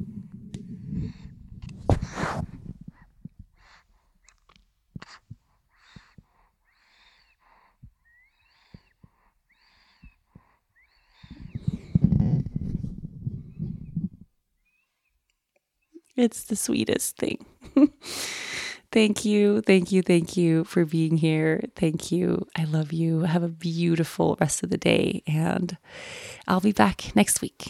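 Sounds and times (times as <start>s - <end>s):
baby breathing: 0.3s - 14.8s, 25.8s - 26.5s
baby snoring: 0.7s - 3.1s, 5.0s - 14.1s
speech: 16.2s - 27.6s.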